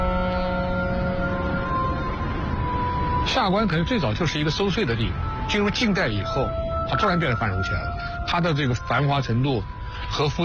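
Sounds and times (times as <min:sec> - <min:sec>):
ship steam whistle: 0:00.0 - 0:02.9
speech: 0:03.3 - 0:10.4.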